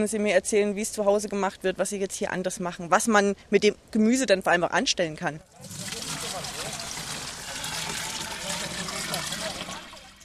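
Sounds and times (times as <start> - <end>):
speech: 0.0 - 6.0
water from a watering can or hose splashing onto plants in a garden bed: 5.5 - 10.2
faint murmuring voices: 5.6 - 10.1.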